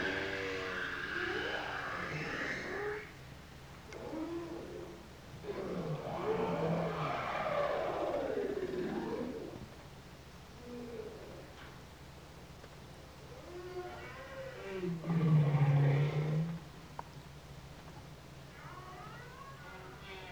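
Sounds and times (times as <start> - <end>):
bowhead whale: 0.0 - 3.2, 3.9 - 9.8, 13.3 - 16.8, 18.5 - 20.3.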